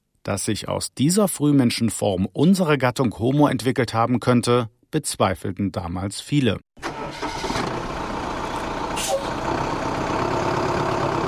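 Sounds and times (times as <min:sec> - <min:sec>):
speech: 0:00.2 - 0:07.2
bus engine running: 0:06.9 - 0:11.2.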